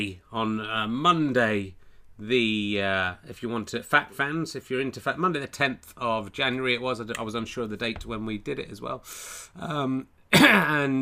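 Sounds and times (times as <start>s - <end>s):
speech: 0.0s - 11.0s
little cough: 10.3s - 10.8s.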